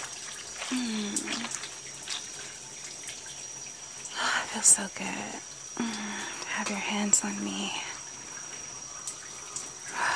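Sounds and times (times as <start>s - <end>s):
water trickling and splashing as someone's back is washed: 0.0s - 10.1s
speech: 4.6s - 8.0s.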